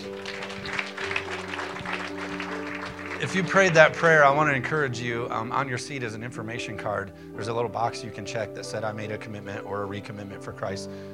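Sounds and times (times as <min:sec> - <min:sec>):
audience clapping hands: 0:00.0 - 0:04.5
speech: 0:03.2 - 0:11.1.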